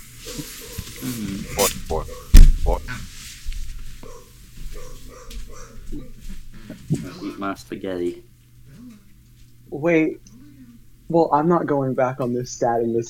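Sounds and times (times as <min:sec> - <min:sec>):
speech: 0:00.3 - 0:02.1, 0:07.4 - 0:08.3, 0:09.8 - 0:10.3, 0:11.1 - 0:13.0
dog barking: 0:01.5 - 0:02.4, 0:04.0 - 0:06.2.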